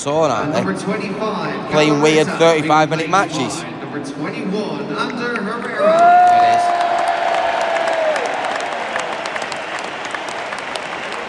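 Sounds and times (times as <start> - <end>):
speech: 0.0 - 6.8
stadium crowd cheering and applauding for a player: 5.6 - 11.2.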